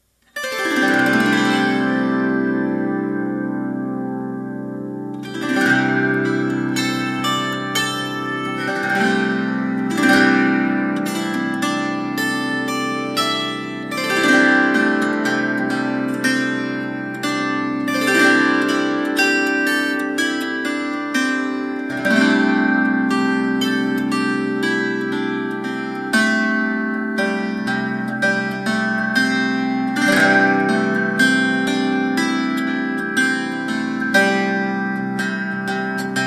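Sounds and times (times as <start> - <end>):
plucked strings melody: 0.4 - 36.2.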